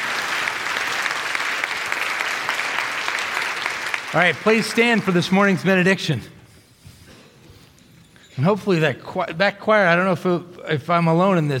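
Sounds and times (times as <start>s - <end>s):
round of applause: 0.0s - 5.9s
speech: 4.1s - 6.4s, 8.4s - 11.5s.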